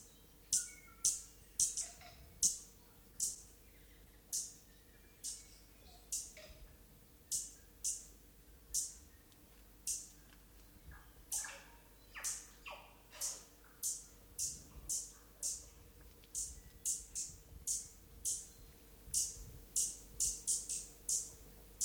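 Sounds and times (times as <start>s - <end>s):
stitchbird song: 0.0s - 21.8s.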